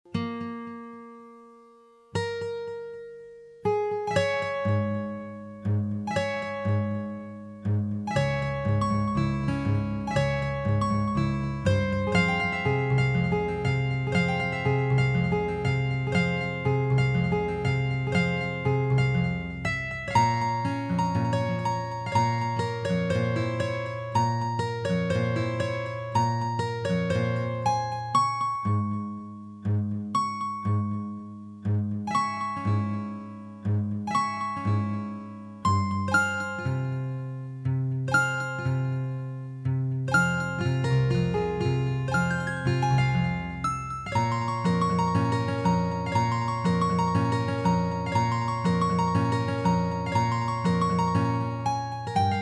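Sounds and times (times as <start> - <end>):
guitar: 0.0 - 52.4.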